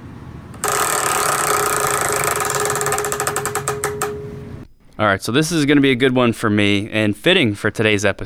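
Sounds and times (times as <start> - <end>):
prize wheel spinning: 0.6 - 4.6
speech: 5.0 - 8.2.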